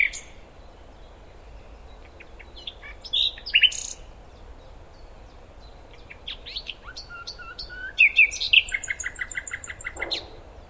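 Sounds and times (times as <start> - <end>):
common nightingale song: 0.0 - 10.6.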